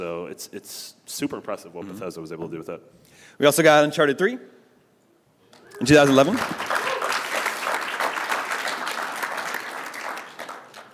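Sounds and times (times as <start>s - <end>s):
speech: 0.0s - 4.6s, 5.8s - 6.7s
audience applause: 5.7s - 10.9s.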